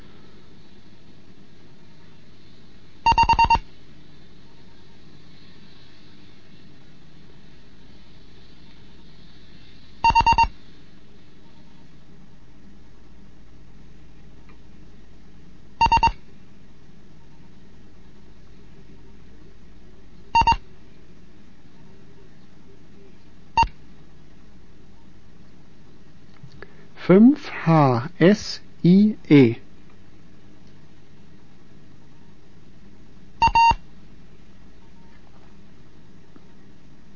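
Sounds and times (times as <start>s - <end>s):
faint low hum: 0.0s - 37.1s
Morse code beeps: 3.1s - 3.6s, 10.0s - 10.5s, 15.8s - 16.2s, 20.4s - 20.6s, 33.4s - 33.8s
speech: 27.1s - 29.6s.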